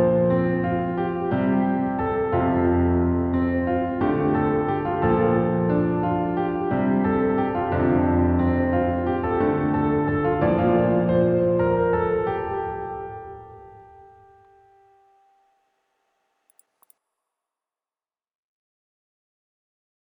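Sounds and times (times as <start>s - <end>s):
piano cover of a bard song: 0.0s - 15.5s.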